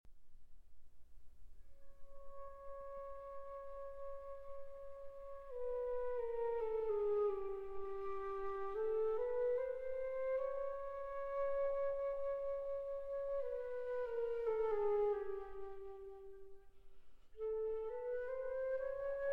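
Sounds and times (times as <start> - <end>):
flute: 1.6 - 19.3.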